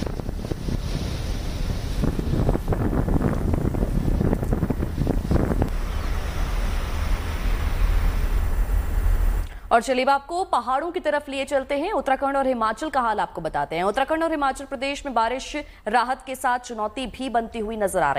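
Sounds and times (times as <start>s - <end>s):
crashing surf: 0.0s - 9.4s
gusty seaside wind roaring across the microphone: 0.0s - 9.4s
speech: 9.7s - 18.1s.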